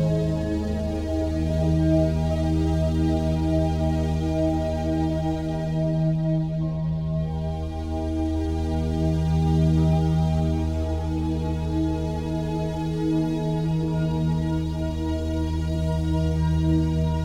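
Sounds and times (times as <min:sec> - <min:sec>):
528 Hz chakra cleansing meditation relaxation music: 0:00.0 - 0:17.2.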